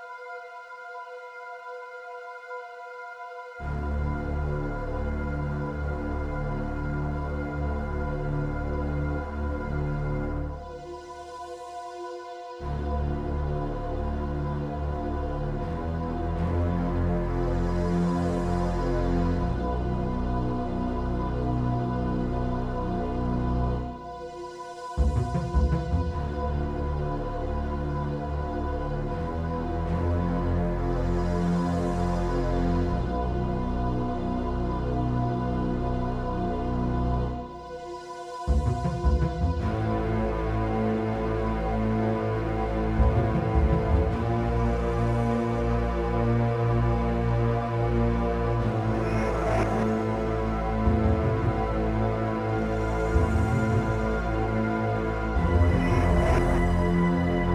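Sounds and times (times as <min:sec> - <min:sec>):
horror music: 0:00.0 - 0:57.5.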